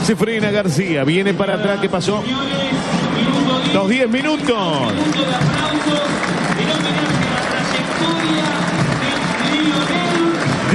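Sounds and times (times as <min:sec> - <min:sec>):
speech: 0:00.1 - 0:06.8
stadium crowd applauding: 0:03.1 - 0:10.7.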